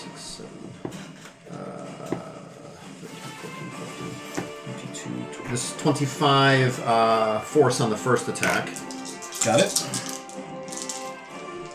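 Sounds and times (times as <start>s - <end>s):
speech: 5.5s - 8.8s, 9.4s - 10.1s
dice clattering on a table: 8.3s - 11.7s.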